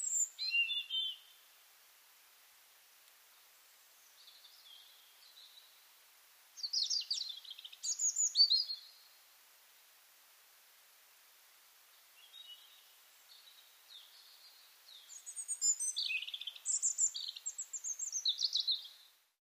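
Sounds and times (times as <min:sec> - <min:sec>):
European robin song: 0:00.0 - 0:01.6, 0:03.5 - 0:05.9, 0:06.5 - 0:09.2, 0:11.9 - 0:19.2.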